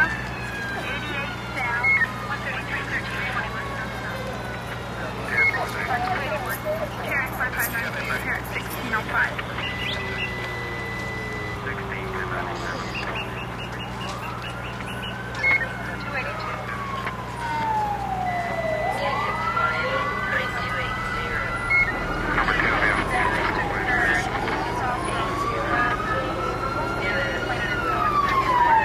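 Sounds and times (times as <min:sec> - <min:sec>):
police siren: 0:00.0 - 0:28.8.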